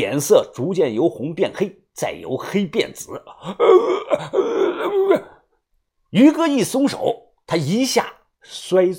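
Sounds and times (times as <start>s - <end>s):
speech: 0.0s - 5.3s, 6.1s - 8.9s
man choking groan while being strangled: 3.3s - 5.4s
gasping: 3.3s - 5.6s.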